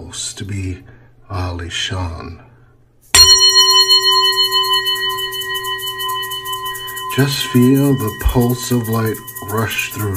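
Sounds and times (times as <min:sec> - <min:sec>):
speech: 0:00.1 - 0:02.5, 0:07.2 - 0:10.1
meditation bell ringing: 0:03.2 - 0:10.1.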